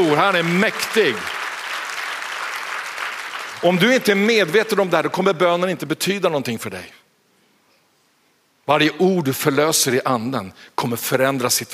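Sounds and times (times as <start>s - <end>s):
speech: 0.0s - 1.4s, 3.6s - 7.0s, 8.7s - 11.7s
crowd applauding: 0.0s - 5.2s.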